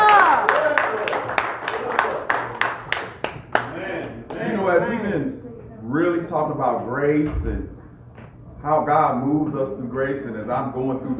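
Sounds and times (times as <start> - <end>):
audience clapping in praise: 0.0 - 4.6
speech: 6.3 - 7.8, 8.6 - 11.1.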